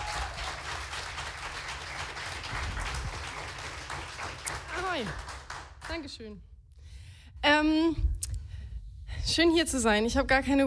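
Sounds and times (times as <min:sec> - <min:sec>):
audience applause: 0:00.0 - 0:06.0
speech: 0:05.0 - 0:05.3, 0:05.9 - 0:06.5, 0:07.4 - 0:08.1, 0:09.2 - 0:10.6.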